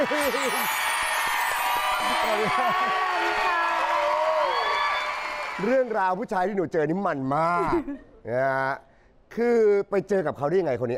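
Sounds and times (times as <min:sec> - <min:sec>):
speech: 0:00.0 - 0:01.0, 0:02.0 - 0:03.6, 0:05.6 - 0:10.9
audience applause and cheering: 0:00.0 - 0:06.2.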